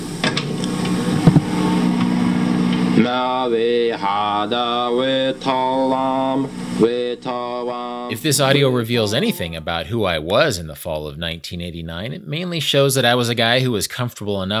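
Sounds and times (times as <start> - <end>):
microwave oven running: 0.0 - 9.8
man singing a melody: 3.0 - 11.6
speech: 3.0 - 14.5.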